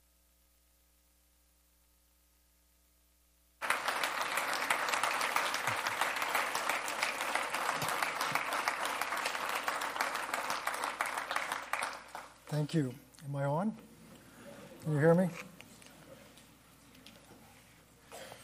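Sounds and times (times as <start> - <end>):
audience applause: 3.6 - 12.4
speech: 12.6 - 13.9, 14.8 - 15.5.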